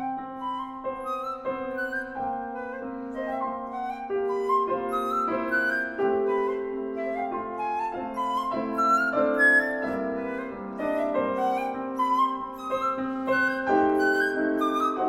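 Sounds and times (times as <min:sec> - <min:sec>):
flute playing a slow piece: 0:00.0 - 0:15.0
piano playing a slow piece: 0:00.0 - 0:15.0.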